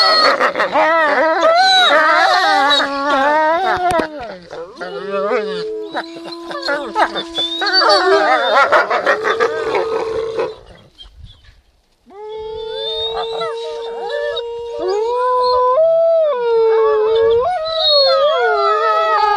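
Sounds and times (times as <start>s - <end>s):
wolf howling: 0.0s - 10.8s, 12.1s - 19.3s.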